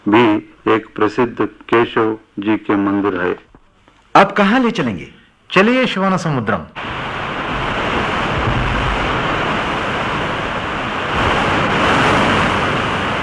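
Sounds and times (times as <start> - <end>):
speech: 0.0 - 3.5, 4.2 - 7.1
rushing water of a river waterfall: 6.8 - 13.2.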